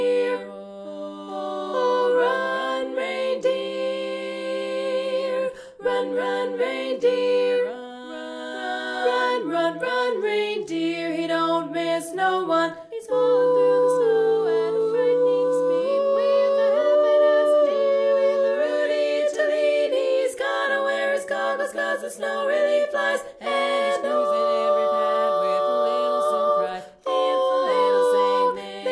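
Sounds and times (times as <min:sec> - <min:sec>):
tenor singing: 0:00.0 - 0:28.9.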